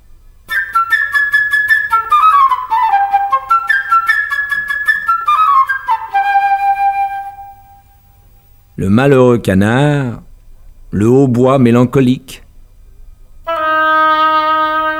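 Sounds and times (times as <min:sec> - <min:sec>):
light chirping flute playing a quick high birdlike melody: 0:00.5 - 0:08.2, 0:13.5 - 0:14.9
speech: 0:08.8 - 0:10.2, 0:10.9 - 0:12.4.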